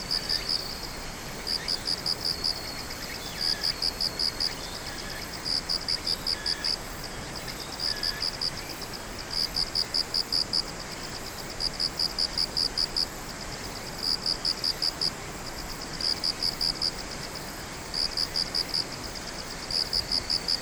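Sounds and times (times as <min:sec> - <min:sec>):
insect singing in pulsed chirps: 0:00.0 - 0:20.6.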